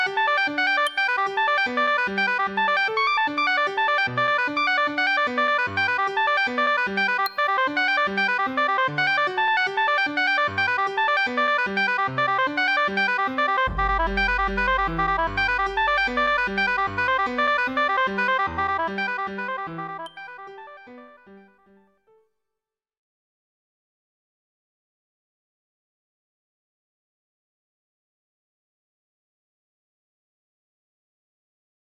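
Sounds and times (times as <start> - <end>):
oboe with other instruments: 0.0 - 21.5.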